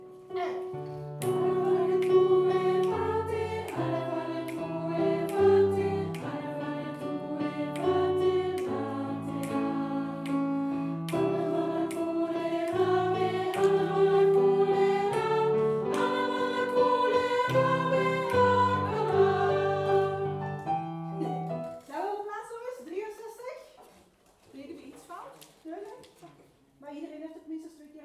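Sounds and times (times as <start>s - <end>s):
soprano singing: 0.1s - 22.0s.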